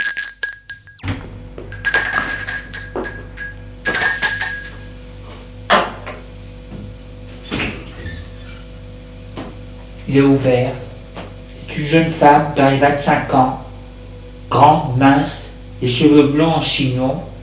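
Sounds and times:
doorbell ringing: 0:00.0 - 0:05.2
speech: 0:10.1 - 0:10.8, 0:11.8 - 0:13.6, 0:14.5 - 0:17.3.

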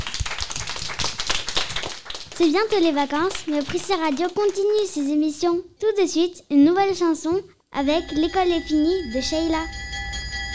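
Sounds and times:
audience applause: 0:00.0 - 0:05.0
speech: 0:02.4 - 0:09.8.

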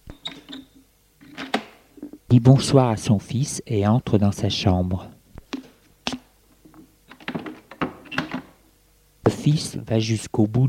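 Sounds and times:
door opening: 0:00.0 - 0:02.1, 0:07.1 - 0:08.6
speech: 0:02.3 - 0:05.1, 0:09.5 - 0:10.6.

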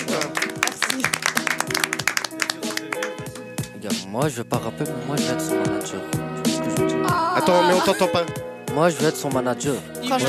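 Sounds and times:
audience applause: 0:00.0 - 0:03.4
speech: 0:04.1 - 0:10.2.

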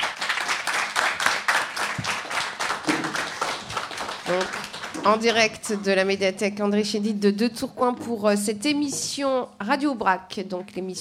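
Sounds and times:
crowd applause: 0:00.0 - 0:05.4
speech: 0:04.3 - 0:10.9.

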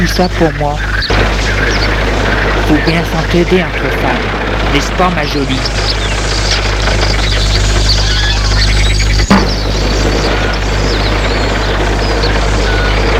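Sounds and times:
speech: 0:00.0 - 0:01.0, 0:02.7 - 0:06.1
car engine drone: 0:00.0 - 0:13.1
road noise: 0:00.0 - 0:13.1
sharp knock: 0:09.3 - 0:09.6.

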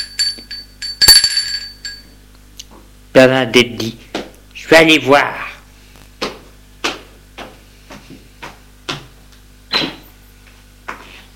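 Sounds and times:
bell ringing at a gate: 0:00.0 - 0:02.2
speech: 0:03.2 - 0:04.0, 0:04.7 - 0:05.4.

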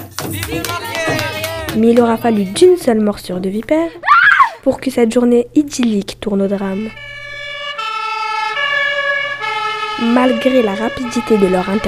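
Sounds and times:
speech: 0:01.8 - 0:07.1, 0:10.0 - 0:11.8
emergency vehicle siren wailing in a two-tone pattern: 0:07.4 - 0:11.8.

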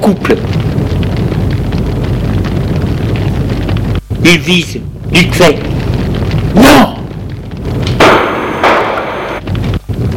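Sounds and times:
speech: 0:00.0 - 0:00.6, 0:04.2 - 0:05.7
rumbling noise: 0:00.0 - 0:10.1
gunshots hitting a wall: 0:07.8 - 0:09.5.

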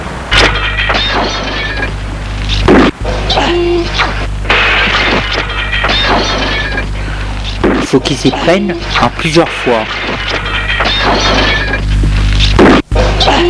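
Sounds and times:
steady low hum: 0:00.0 - 0:13.4
roof tile smashed against a glass window: 0:00.3 - 0:03.0, 0:04.0 - 0:06.9, 0:08.8 - 0:11.8
speech: 0:07.9 - 0:10.4, 0:13.2 - 0:13.4.

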